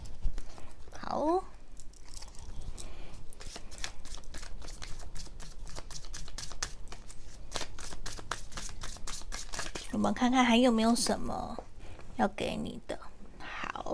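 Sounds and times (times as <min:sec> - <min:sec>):
tarot cards being shuffled and drawn: 0:03.1 - 0:10.0
speech: 0:10.0 - 0:11.6, 0:12.2 - 0:13.0.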